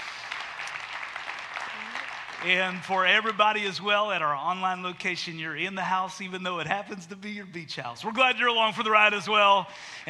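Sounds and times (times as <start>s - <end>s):
church congregation clapping during a service: 0.0s - 4.1s
speech: 2.4s - 10.0s.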